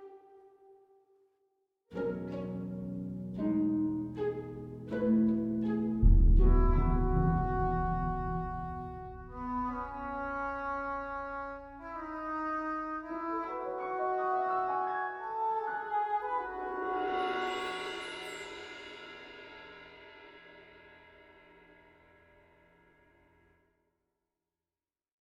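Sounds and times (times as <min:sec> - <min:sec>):
world music: 0:02.0 - 0:20.9.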